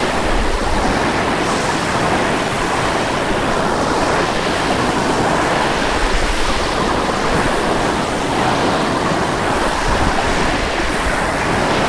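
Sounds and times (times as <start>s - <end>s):
waves: 0.0s - 11.8s.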